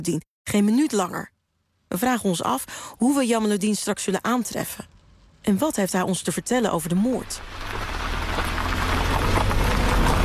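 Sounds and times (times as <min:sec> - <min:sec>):
speech: 0:00.0 - 0:08.0
heavy rain turning into a cloudburst: 0:07.3 - 0:10.2.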